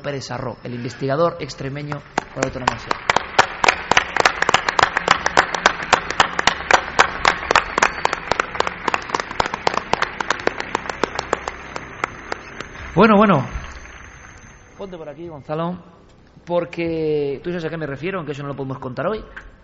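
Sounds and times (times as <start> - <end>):
speech: 0.0 - 3.2, 13.0 - 13.6, 14.8 - 19.5
audience applauding a guest: 1.8 - 15.1.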